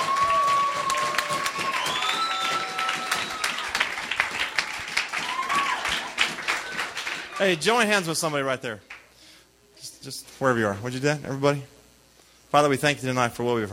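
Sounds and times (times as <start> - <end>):
whistles and cheers: 0.0 - 7.0
audience applause: 0.0 - 7.6
speech: 7.4 - 8.9, 10.0 - 11.8, 12.5 - 13.7.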